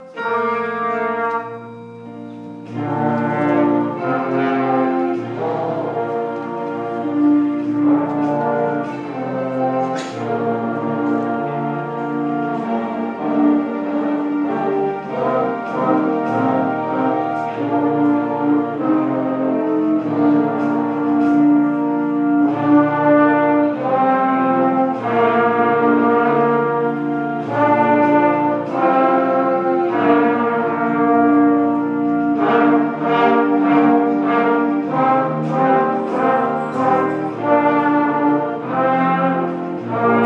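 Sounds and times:
junior brass ensemble playing: 0.0 - 40.2.

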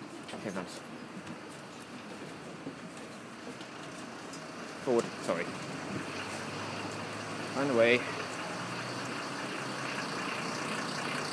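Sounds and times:
road traffic with buses: 0.0 - 11.3
speech: 0.4 - 1.4, 4.8 - 6.1, 7.6 - 8.2.

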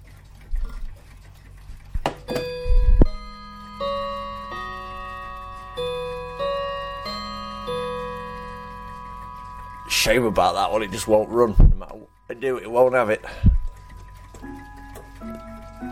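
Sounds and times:
mechanical clicks and knocks: 0.0 - 12.0, 12.8 - 15.9
clock ticking: 0.0 - 15.9
clock chime striking a melody of bell tones: 2.3 - 15.9
speech: 10.0 - 13.5.

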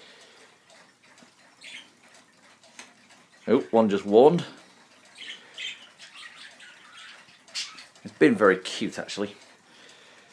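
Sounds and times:
budgie squawking: 1.6 - 2.0, 5.1 - 8.1
speech: 3.4 - 4.6, 8.2 - 9.4.

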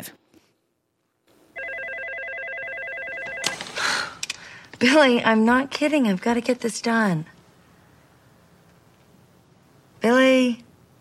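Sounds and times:
desk phone ringing: 1.6 - 3.8
speech: 4.8 - 7.3.

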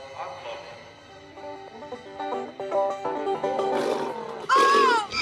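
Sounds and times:
street banjoist playing banjo: 1.3 - 5.1.

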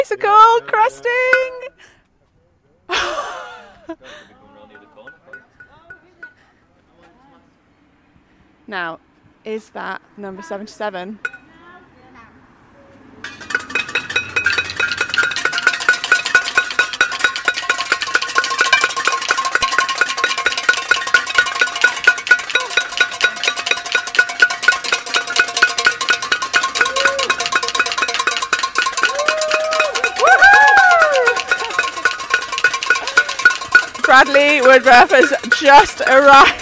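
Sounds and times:
speech: 0.0 - 2.0, 2.9 - 4.4, 8.7 - 11.4, 34.2 - 36.6
pots and pans being banged: 4.8 - 6.4, 13.2 - 36.6.

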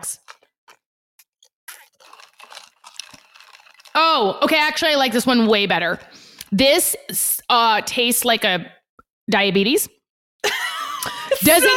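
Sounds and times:
crunchy chewing of an apple-flavoured snack: 0.2 - 4.0
speech: 4.0 - 10.0, 11.4 - 11.7.

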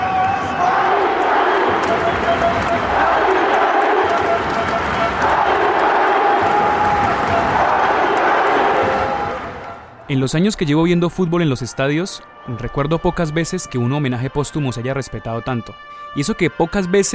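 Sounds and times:
stadium crowd applauding: 0.0 - 10.4
speech: 10.1 - 17.1.

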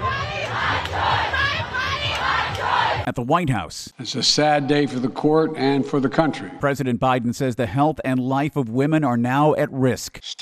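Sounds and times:
crowd jeering: 0.0 - 3.0
speech: 3.1 - 10.3.

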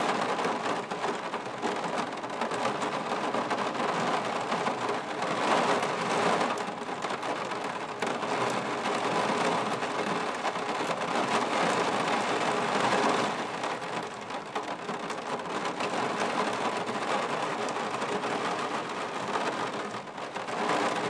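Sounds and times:
heavy rain inside and out: 0.0 - 21.0.

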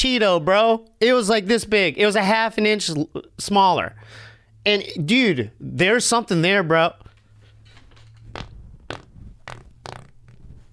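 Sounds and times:
speech: 0.0 - 7.0
stuttering machine gun fart: 8.2 - 10.7.

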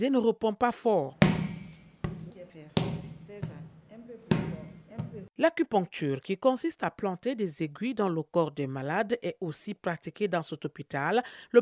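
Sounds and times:
speech: 0.0 - 1.2, 4.9 - 11.6
ball kicked by a patient during hospital rehabilitation: 1.2 - 5.3.

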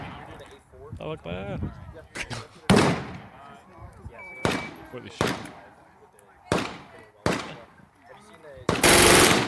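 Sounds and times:
speech: 0.9 - 2.5, 4.9 - 5.6
machine gun firing bursts: 8.8 - 9.4.

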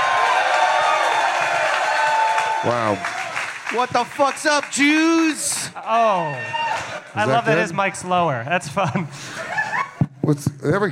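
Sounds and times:
live show audience cheering and clapping: 0.0 - 8.0
speech: 2.6 - 9.4, 10.3 - 10.9
laughter: 8.6 - 10.0.

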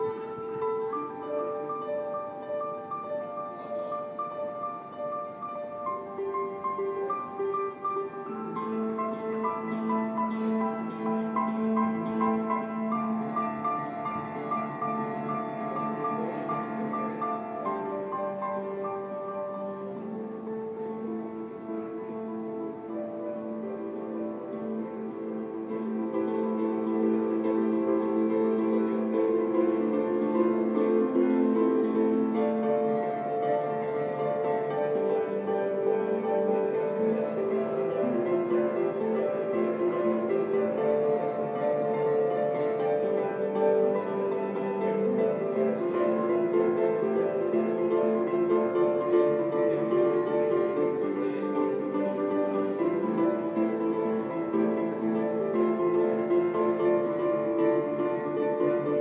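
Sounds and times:
man playing a public piano: 0.0 - 59.0.

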